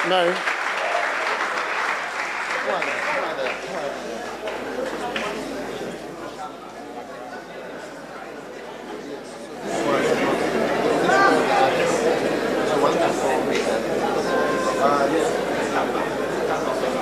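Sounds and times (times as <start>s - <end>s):
crowd applause: 0.0s - 6.9s, 9.7s - 17.0s
murmur of voices: 0.0s - 17.0s.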